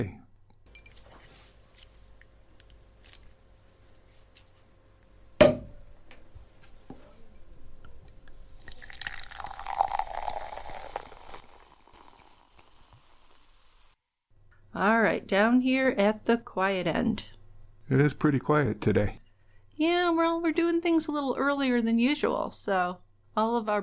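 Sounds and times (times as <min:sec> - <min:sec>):
speech: 0:00.0 - 0:00.2, 0:14.8 - 0:19.2, 0:19.8 - 0:23.8
drink bottle opened with a pop: 0:05.4 - 0:05.8
fizzing drink pour: 0:08.5 - 0:13.7.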